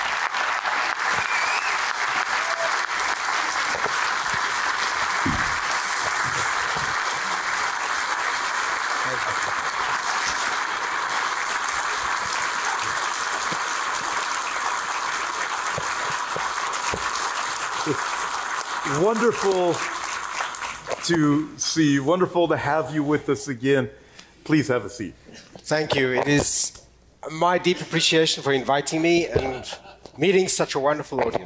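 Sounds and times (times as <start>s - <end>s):
church audience applause welcoming a guest speaker: 0.0s - 21.2s
speech: 19.0s - 20.0s, 21.1s - 26.6s, 27.3s - 31.4s.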